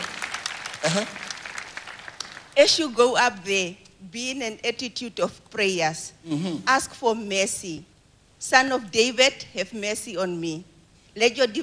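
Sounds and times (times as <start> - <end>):
audience clapping: 0.0 - 2.6
speech: 0.8 - 1.3, 2.6 - 11.6.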